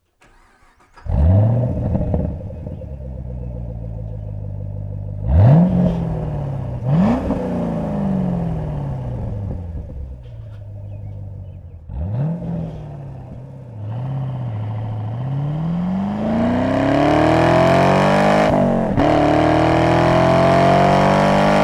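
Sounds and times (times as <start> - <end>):
Chevrolet Camaro SS 1LE: 0.0 - 21.6.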